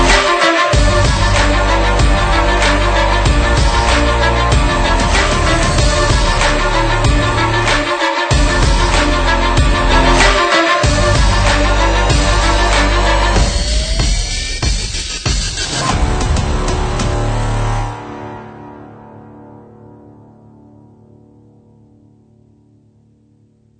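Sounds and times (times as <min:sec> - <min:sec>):
dramatic sport trailer big beat music: 0:00.0 - 0:21.2.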